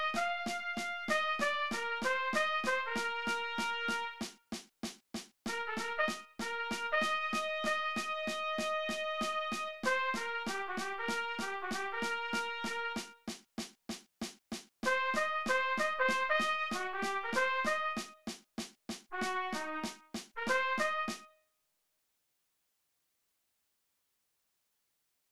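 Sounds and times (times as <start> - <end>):
trumpet playing in cut time: 0.0 - 4.3, 5.5 - 13.2, 14.8 - 18.2, 19.1 - 21.3.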